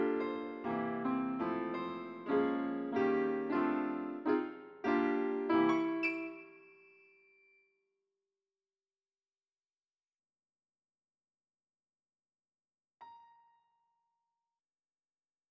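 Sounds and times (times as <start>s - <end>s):
piano: 0.0s - 7.4s.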